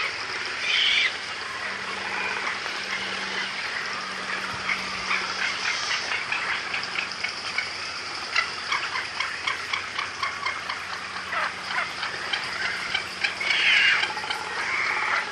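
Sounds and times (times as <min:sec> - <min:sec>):
frigatebird calling: 0:00.0 - 0:15.3.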